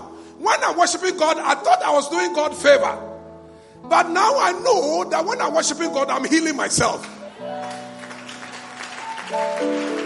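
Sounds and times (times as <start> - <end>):
speech: 0.5 - 3.1, 3.8 - 7.2, 9.3 - 9.8
audience clapping: 6.9 - 10.0.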